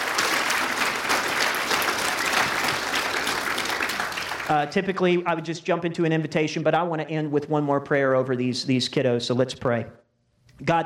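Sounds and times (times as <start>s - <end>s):
audience applause: 0.0s - 4.8s
speech: 4.5s - 10.0s, 10.6s - 10.8s.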